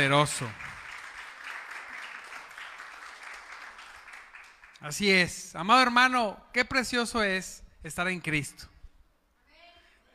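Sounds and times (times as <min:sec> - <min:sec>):
speech: 0:00.0 - 0:00.6, 0:04.8 - 0:08.7
audience applause: 0:00.0 - 0:04.8.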